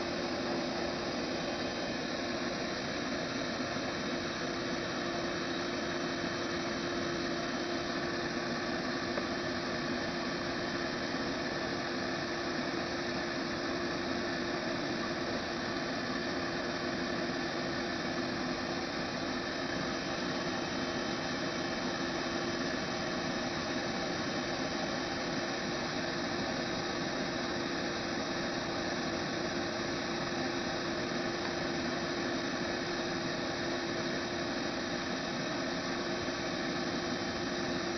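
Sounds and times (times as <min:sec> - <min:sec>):
low pitch shifted vacuum cleaner: 0:00.0 - 0:37.9.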